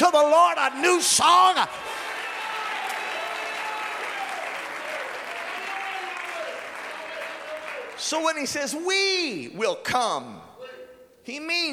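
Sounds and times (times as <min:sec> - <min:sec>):
speech: 0:00.0 - 0:02.0, 0:08.0 - 0:10.5, 0:11.2 - 0:11.7
audience clapping: 0:01.2 - 0:08.6.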